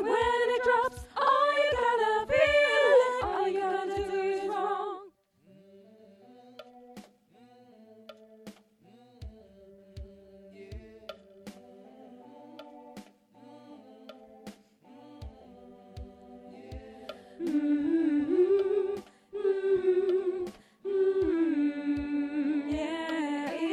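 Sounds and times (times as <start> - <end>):
soprano singing: 0.0 - 6.8, 11.7 - 23.7.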